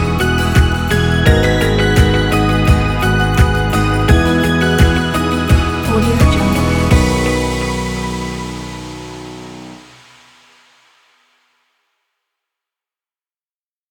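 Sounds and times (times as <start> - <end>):
slow inspirational corporate music: 0.0 - 10.3.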